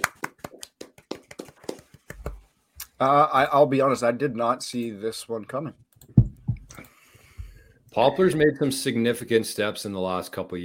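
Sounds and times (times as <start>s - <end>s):
hands clapping: 0.0s - 2.9s
speech: 3.0s - 5.8s, 8.0s - 10.6s.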